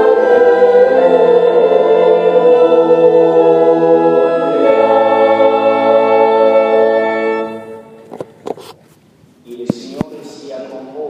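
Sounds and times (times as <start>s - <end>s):
choir singing a chorale: 0.0s - 8.1s.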